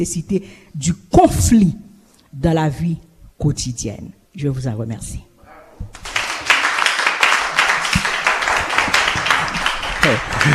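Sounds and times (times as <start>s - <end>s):
speech: 0.0s - 6.1s, 10.1s - 10.5s
audience applause after a speech in a debate competition: 5.9s - 10.5s.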